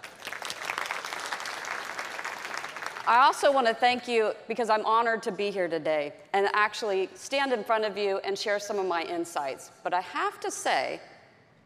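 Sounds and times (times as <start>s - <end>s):
audience applause: 0.0s - 3.1s
speech: 3.1s - 11.1s.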